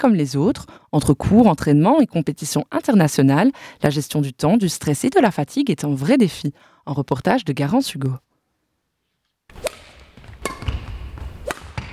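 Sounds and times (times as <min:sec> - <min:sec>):
speech: 0:00.0 - 0:08.3
badminton racket hitting shuttlecocks in a sports hall: 0:09.5 - 0:11.9.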